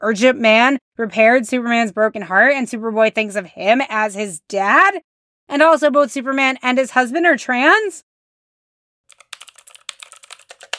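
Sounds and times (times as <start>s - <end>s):
speech: 0.0s - 8.1s
computer keyboard typing: 9.1s - 10.7s.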